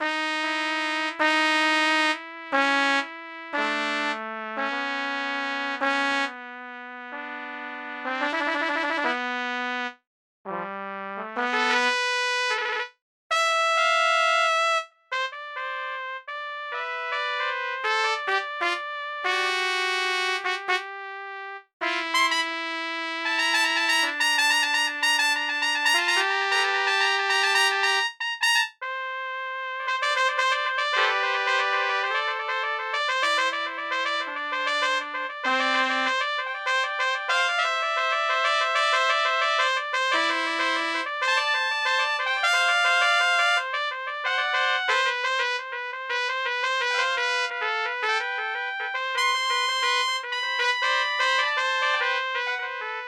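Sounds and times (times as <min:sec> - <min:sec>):
symphonic trumpet music: 0:00.0 - 0:53.0.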